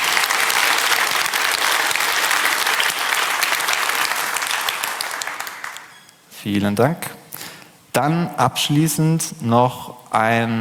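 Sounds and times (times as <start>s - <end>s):
large audience applause: 0.0s - 5.9s
speech: 6.4s - 7.2s, 8.0s - 10.5s.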